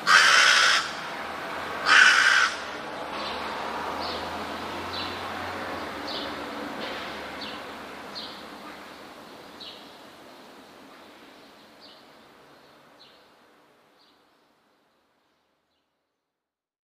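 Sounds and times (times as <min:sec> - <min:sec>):
rook calling with rasping caws: 0:00.0 - 0:01.2, 0:01.8 - 0:02.9.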